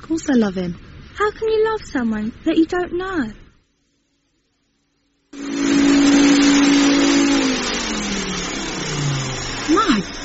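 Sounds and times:
speech: 0:00.1 - 0:03.4
vacuum cleaner running: 0:05.4 - 0:10.2.

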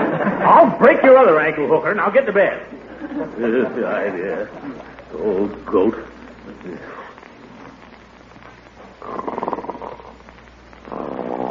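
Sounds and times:
laughter: 0:00.0 - 0:00.8, 0:02.7 - 0:05.1
speech: 0:00.6 - 0:07.1
person snoring: 0:09.0 - 0:11.4.

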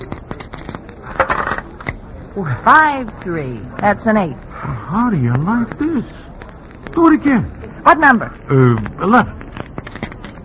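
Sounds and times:
dice rolling on a hard surface: 0:00.4 - 0:02.0
speech: 0:02.4 - 0:06.2, 0:07.0 - 0:09.4.

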